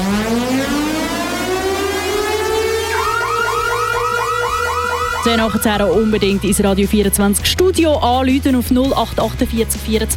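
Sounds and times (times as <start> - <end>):
radio contest alarm siren-like wail and whooping pulses: 0.0 - 6.8
speech: 5.2 - 10.1.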